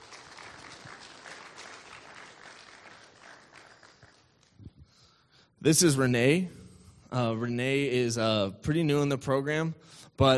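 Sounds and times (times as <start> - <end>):
audience applause: 0.0 - 4.4
speech: 5.6 - 10.3.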